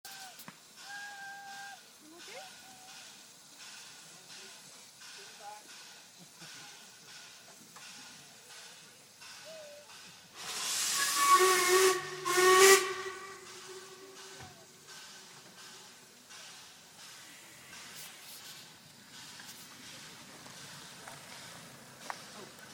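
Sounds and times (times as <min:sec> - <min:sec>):
narrow gauge railway train tooting on a Santa special: 0:00.1 - 0:01.9, 0:09.5 - 0:14.5.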